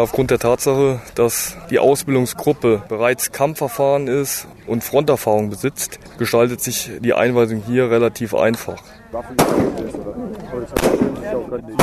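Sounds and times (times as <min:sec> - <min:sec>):
speech: 0:00.0 - 0:11.8
rifle gunshots from Kurdish Peshmerga fighters on a shooting range near Erbil: 0:09.4 - 0:09.9, 0:10.8 - 0:11.8.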